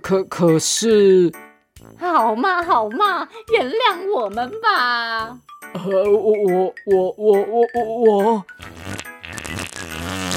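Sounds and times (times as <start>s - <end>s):
speech: 0.1s - 8.8s
fart: 8.6s - 10.3s.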